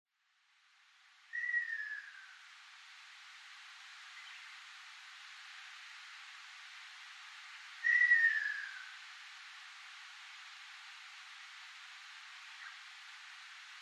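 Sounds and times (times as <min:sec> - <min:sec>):
ruddy kingfisher calling in Yambaru, Okinawa: 0:01.3 - 0:02.4, 0:07.8 - 0:09.0.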